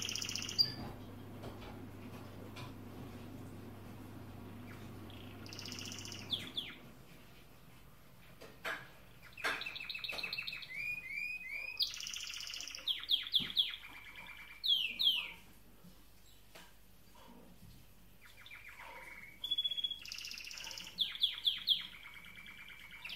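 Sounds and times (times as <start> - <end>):
canary singing: 0.0 - 1.0, 4.2 - 7.0, 9.2 - 15.5, 18.2 - 23.1.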